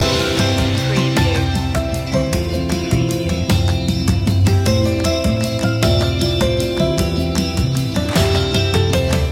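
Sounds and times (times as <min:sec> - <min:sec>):
music loop: 0:00.0 - 0:09.3.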